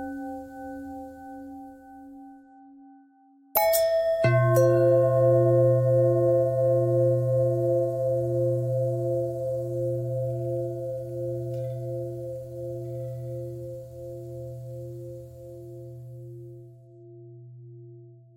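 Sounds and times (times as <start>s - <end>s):
long pentatonic bell tones: 3.6s - 16.4s.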